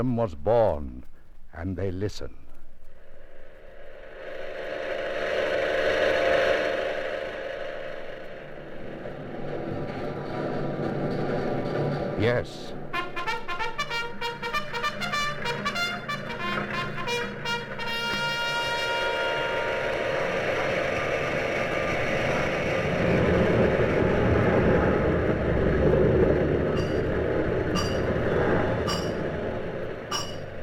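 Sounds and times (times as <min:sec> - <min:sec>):
speech: 0:00.0 - 0:02.4, 0:12.2 - 0:12.8
steady mechanical hum of turbines: 0:00.0 - 0:30.6
loud dense industrial roar: 0:02.8 - 0:30.6
metallic clanking and pounding of forges and assembly lines: 0:08.8 - 0:18.4, 0:26.6 - 0:30.6
sharp knocks: 0:26.7 - 0:29.5, 0:30.1 - 0:30.6.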